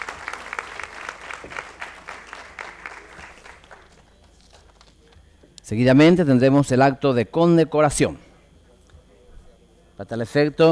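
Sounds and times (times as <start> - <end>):
audience applause: 0.0 - 4.8
speech: 1.4 - 1.6, 5.7 - 8.3, 10.0 - 10.6.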